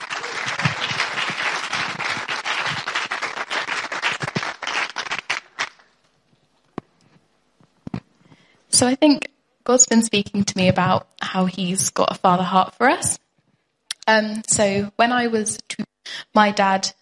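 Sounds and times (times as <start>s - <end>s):
audience clapping: 0.0s - 5.9s
speech: 8.8s - 13.2s, 14.1s - 15.8s, 16.4s - 17.0s.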